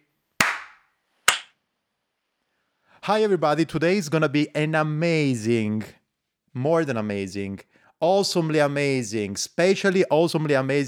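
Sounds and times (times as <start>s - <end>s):
sharp hand claps for recording sync: 0.4s - 1.5s
speech: 3.0s - 6.0s, 6.6s - 10.8s.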